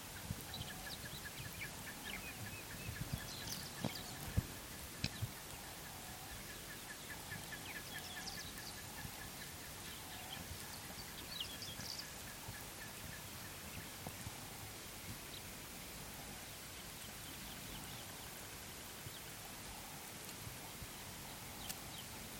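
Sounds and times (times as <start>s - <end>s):
steady rain-like hiss: 0.0s - 22.3s
birds calling at an African waterhole: 0.4s - 14.0s.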